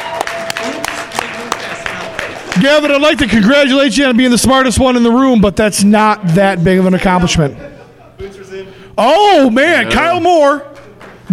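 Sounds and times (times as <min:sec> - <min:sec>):
audience applause for a quiz show contestant: 0:00.0 - 0:03.6
speech: 0:02.6 - 0:07.8, 0:09.0 - 0:10.7
laughter: 0:07.3 - 0:08.5.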